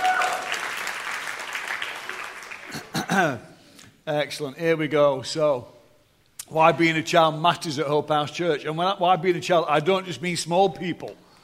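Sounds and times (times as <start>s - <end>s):
audience applause: 0.0s - 3.0s
speech: 3.2s - 5.8s, 6.5s - 11.2s.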